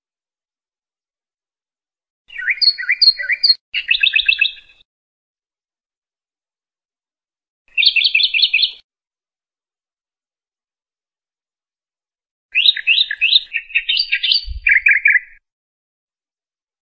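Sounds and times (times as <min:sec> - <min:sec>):
bird singing: 0:02.3 - 0:04.8, 0:07.7 - 0:08.8, 0:12.5 - 0:15.4.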